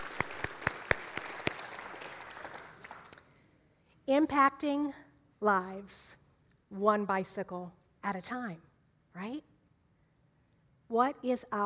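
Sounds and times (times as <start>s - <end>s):
audience clapping hands in praise: 0.0s - 3.3s
speech: 4.1s - 9.5s, 10.9s - 11.6s.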